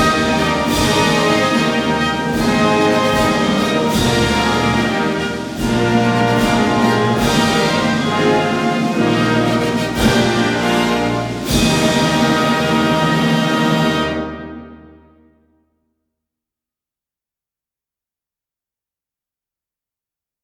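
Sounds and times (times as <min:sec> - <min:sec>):
national anthem played at a Grosser Zapfenstreich: 0:00.0 - 0:15.0.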